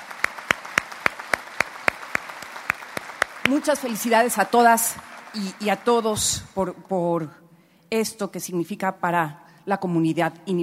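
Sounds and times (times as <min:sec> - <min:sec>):
audience applause: 0:00.0 - 0:06.5
speech: 0:03.5 - 0:10.6.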